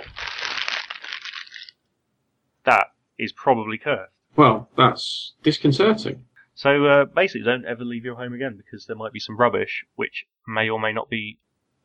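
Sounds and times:
plastic bag crinkling: 0:00.0 - 0:01.8
speech: 0:02.6 - 0:11.8.

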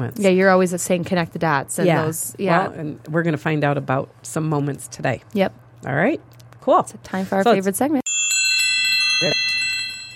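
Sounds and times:
speech: 0:00.0 - 0:08.0, 0:09.2 - 0:09.4
church bells ringing: 0:08.1 - 0:10.1.

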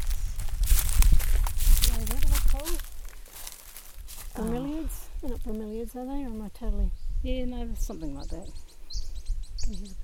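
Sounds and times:
footsteps walking through dry leaves: 0:00.0 - 0:06.1
speech: 0:04.9 - 0:08.7, 0:09.7 - 0:10.0.

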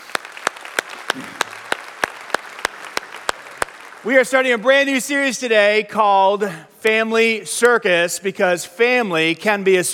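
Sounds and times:
sharp rhythmic claps for first-time guests at a church service: 0:00.0 - 0:04.7
speech: 0:01.2 - 0:01.4, 0:04.0 - 0:09.9.

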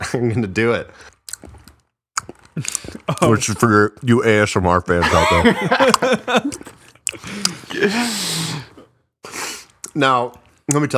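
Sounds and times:
speech: 0:00.1 - 0:01.6, 0:02.2 - 0:08.7, 0:10.0 - 0:10.9
wet mouth sounds of eating and sucking cookie butter: 0:01.0 - 0:03.4, 0:06.5 - 0:07.9, 0:08.7 - 0:10.9
laughter: 0:05.0 - 0:06.8.

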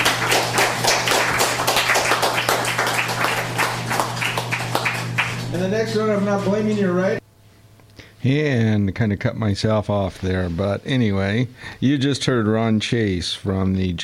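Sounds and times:
audience applause at an open mic reading: 0:00.0 - 0:05.7
speech: 0:05.6 - 0:07.2, 0:08.2 - 0:14.0.

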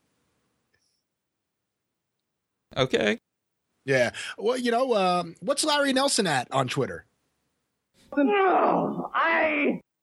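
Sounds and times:
speech: 0:02.8 - 0:03.2, 0:03.9 - 0:07.1, 0:08.1 - 0:09.8
person grunting and groaning: 0:08.2 - 0:09.8.

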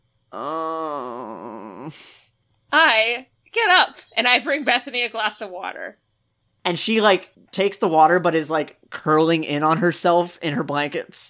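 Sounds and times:
speech: 0:00.3 - 0:01.0, 0:01.9 - 0:06.0, 0:06.6 - 0:11.2
person imitating a groan: 0:00.3 - 0:02.1.

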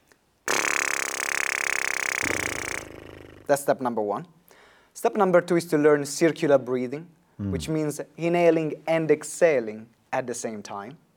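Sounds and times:
lips buzzing into a tube instrument: 0:00.5 - 0:03.5
speech: 0:03.5 - 0:04.4, 0:05.0 - 0:11.0.

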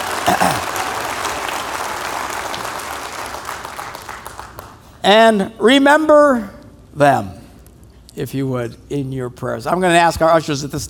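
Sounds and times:
audience applause: 0:00.0 - 0:04.8
speech: 0:05.0 - 0:07.4, 0:08.2 - 0:10.8.

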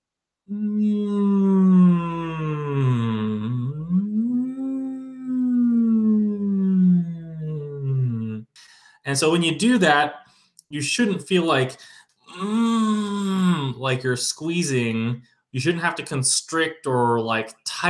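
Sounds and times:
person humming a low resonant pitch: 0:00.5 - 0:08.4, 0:12.3 - 0:13.8
speech: 0:09.1 - 0:12.0, 0:13.8 - 0:17.8.

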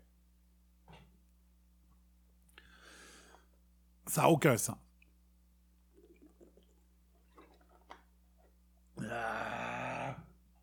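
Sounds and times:
speech: 0:04.1 - 0:04.8
person sipping drink: 0:05.9 - 0:08.6
satisfied groan: 0:09.0 - 0:10.4.

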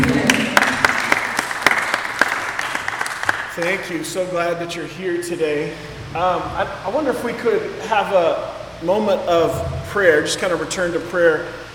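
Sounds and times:
audience applause: 0:00.0 - 0:03.8
speech: 0:03.6 - 0:11.6.

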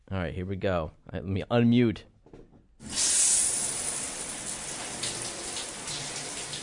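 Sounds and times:
speech: 0:00.3 - 0:02.1
shower water running: 0:02.8 - 0:06.6.

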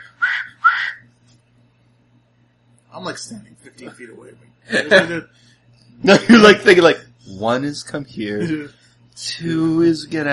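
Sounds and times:
shrill whistle blasts: 0:00.0 - 0:01.0
faint low hum: 0:00.0 - 0:10.3
speech: 0:03.0 - 0:10.3.

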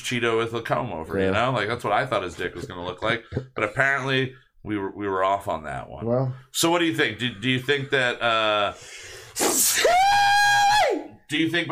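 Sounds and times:
speech: 0:00.1 - 0:10.0, 0:11.3 - 0:11.7
loud sneeze: 0:09.4 - 0:10.1.

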